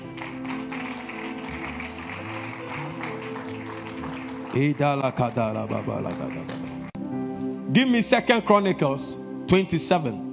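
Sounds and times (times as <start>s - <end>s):
audience clapping: 0.0s - 7.0s
speech: 4.5s - 6.6s, 7.7s - 10.2s.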